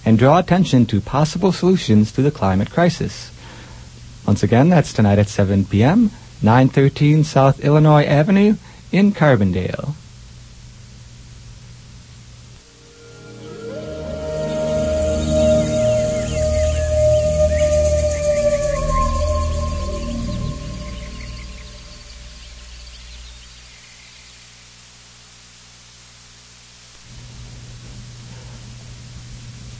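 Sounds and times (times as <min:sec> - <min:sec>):
speech: 0:00.0 - 0:03.4, 0:04.2 - 0:10.0
rhythmic music track: 0:12.6 - 0:22.4
birds chirping in a music track: 0:12.6 - 0:24.8.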